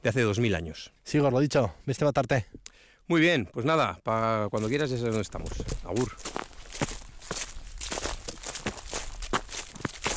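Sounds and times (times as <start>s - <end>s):
speech: 0.0s - 6.4s
footsteps on fallen autumn leaves in oak woods: 4.6s - 10.1s.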